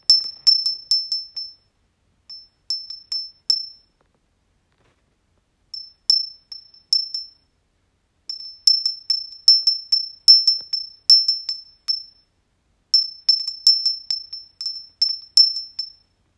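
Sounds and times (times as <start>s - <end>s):
wind chime: 0.0s - 1.7s, 2.3s - 3.9s, 5.8s - 7.4s, 8.3s - 12.2s, 13.0s - 16.1s.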